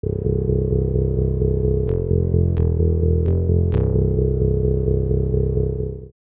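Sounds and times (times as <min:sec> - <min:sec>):
bass: 0:00.0 - 0:06.2.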